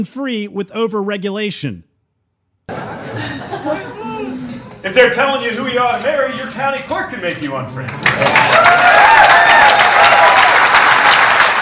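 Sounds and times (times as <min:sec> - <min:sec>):
speech: 0:00.0 - 0:01.9, 0:02.7 - 0:03.8, 0:04.8 - 0:09.8
laughter: 0:02.7 - 0:04.8
loud audience applause: 0:07.9 - 0:11.6
faint cheering: 0:08.3 - 0:10.9.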